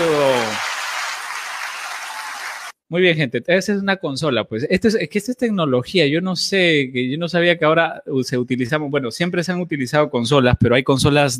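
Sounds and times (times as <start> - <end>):
applause sound effect: 0.0 - 2.8
speech: 2.9 - 11.3.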